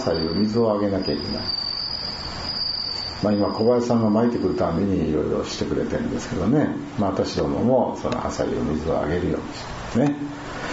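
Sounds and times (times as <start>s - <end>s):
speech: 0.0s - 1.7s, 3.2s - 10.3s
Bell cricket trilling: 0.0s - 6.3s.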